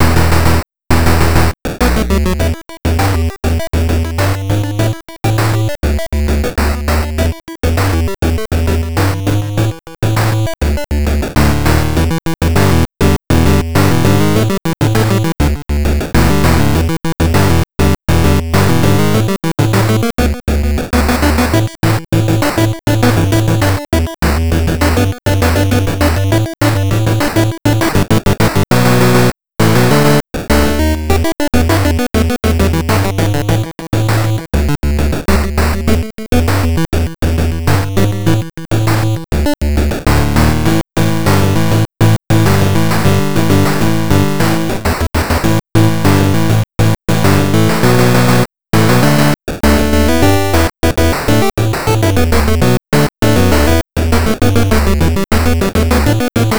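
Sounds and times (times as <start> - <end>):
8-bit arcade level music: 0.0 - 56.5.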